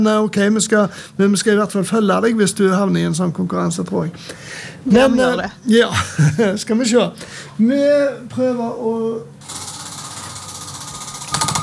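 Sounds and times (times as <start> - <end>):
speech: 0.0 - 9.6
laughter: 5.0 - 6.7
prize wheel spinning with mechanical clicks: 9.4 - 11.6.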